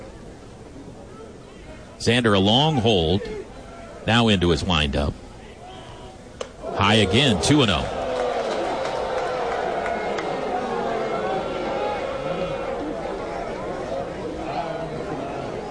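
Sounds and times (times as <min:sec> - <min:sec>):
speech: 0:02.0 - 0:05.2, 0:06.8 - 0:08.0
baseball crowd reacting in disapproval: 0:05.7 - 0:15.7.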